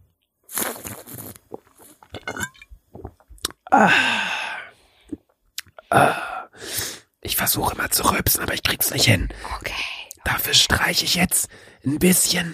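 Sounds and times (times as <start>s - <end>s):
taking a sip of a drink: 0.5s - 3.7s
speech: 3.7s - 4.2s, 7.5s - 12.5s.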